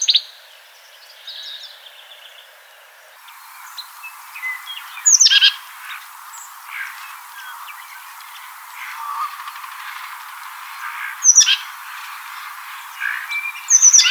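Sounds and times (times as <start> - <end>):
Baeolophus inornatus oak titmouse calling: 3.3 - 14.0.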